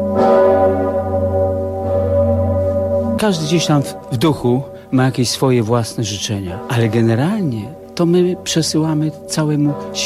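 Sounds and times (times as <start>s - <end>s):
Sigismund Bell at Wawel in Kraków tolling for the new year: 0.0s - 10.0s
speech: 3.2s - 10.0s.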